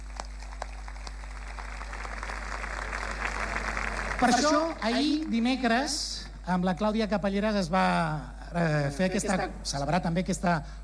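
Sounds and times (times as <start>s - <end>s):
audience applause: 0.0s - 5.6s
speech: 4.2s - 10.8s.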